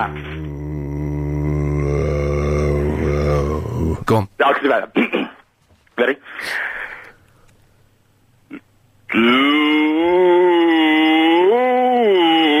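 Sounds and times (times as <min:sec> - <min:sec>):
speech: 0:00.0 - 0:00.4, 0:03.9 - 0:05.3, 0:06.0 - 0:06.7, 0:09.1 - 0:10.7
person imitating a cow moo: 0:00.0 - 0:04.1, 0:08.5 - 0:12.5
click: 0:07.0 - 0:07.6.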